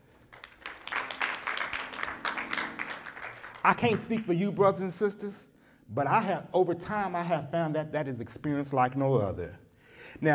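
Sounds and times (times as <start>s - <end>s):
audience clapping hands in praise: 0.0s - 4.3s
speech: 3.6s - 9.6s, 10.2s - 10.3s.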